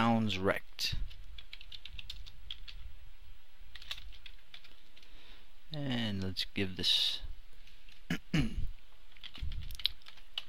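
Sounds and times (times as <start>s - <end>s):
low hum: 0.0s - 10.4s
speech: 0.3s - 1.0s, 5.7s - 7.2s, 8.4s - 8.6s
typing code on a computer keyboard: 1.1s - 2.8s, 3.7s - 5.1s, 9.1s - 10.4s.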